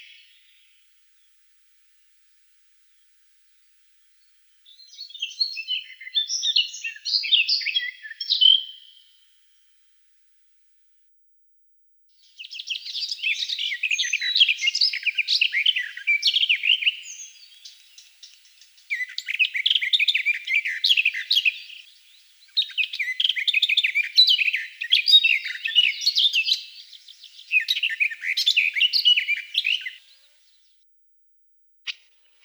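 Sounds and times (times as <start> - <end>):
garden warbler singing: 4.8 - 9.0, 12.2 - 30.3.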